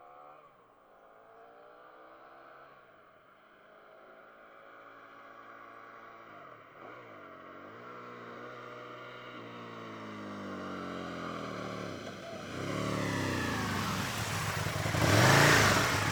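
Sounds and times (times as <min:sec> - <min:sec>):
Aprilia RSV Mille motorcycle engine: 0:10.1 - 0:16.1.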